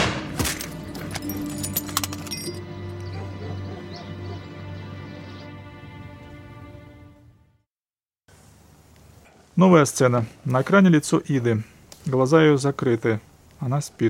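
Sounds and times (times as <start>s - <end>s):
Browning pistol gunshot: 0.0s - 0.6s
speech: 9.6s - 14.0s.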